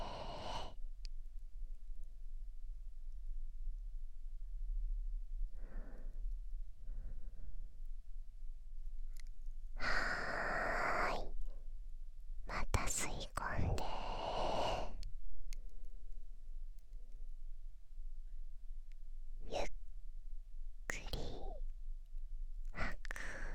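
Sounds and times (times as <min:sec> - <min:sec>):
person taking a deep breath in and exhaling slowly during guided relaxation: 0:00.0 - 0:00.8, 0:05.5 - 0:07.8, 0:09.8 - 0:11.1, 0:13.6 - 0:15.0, 0:22.8 - 0:23.5
faint steady hum: 0:00.0 - 0:23.5.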